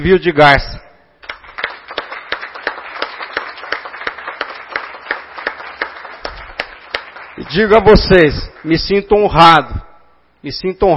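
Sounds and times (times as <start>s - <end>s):
speech: 0.0s - 0.8s, 7.4s - 10.9s
audience applause: 1.2s - 8.0s.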